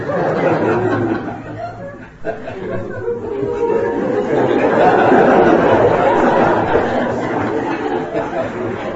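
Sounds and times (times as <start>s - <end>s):
chatter: 0.0s - 8.9s
scattered laughter: 0.0s - 8.9s
crowd of people imitating cuckoo calls: 0.7s - 8.9s.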